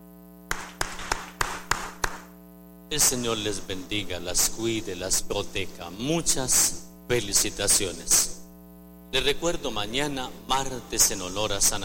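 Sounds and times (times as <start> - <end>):
audience applause: 0.5 - 2.3
speech: 2.9 - 8.4, 9.1 - 11.8.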